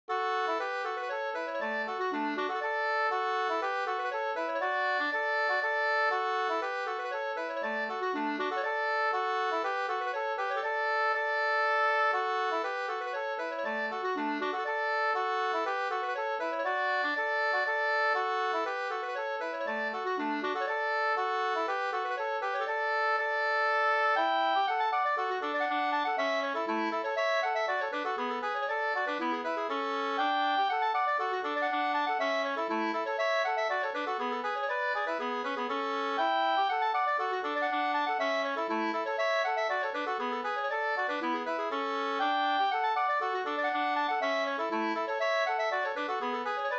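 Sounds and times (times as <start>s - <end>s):
polska dance tune: 0.2s - 46.7s.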